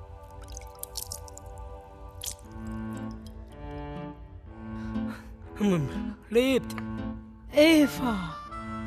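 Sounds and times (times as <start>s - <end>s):
wet squishing bursts: 0.0s - 3.4s
water dripping and splashing in small irregular drops: 0.0s - 3.5s
speech: 5.6s - 6.9s, 7.6s - 8.4s.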